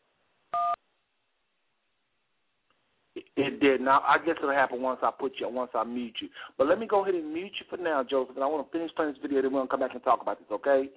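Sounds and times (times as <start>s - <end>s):
faint hiss: 0.0s - 10.9s
phone keypad tone for number one: 0.6s - 0.8s
speech: 3.4s - 10.9s.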